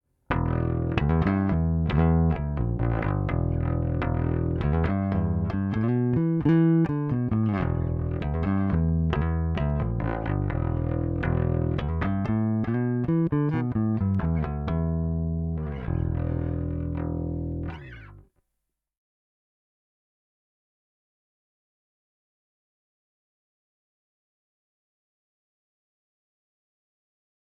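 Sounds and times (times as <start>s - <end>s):
Ampeg Heritage 50th Anniversary SVT 1975 bass amp DI, flat: 0.3s - 18.2s.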